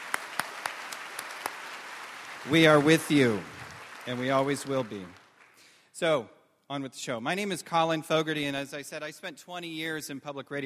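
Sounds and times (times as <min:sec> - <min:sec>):
audience applause: 0:00.0 - 0:05.7
speech: 0:02.4 - 0:05.2, 0:06.0 - 0:10.6.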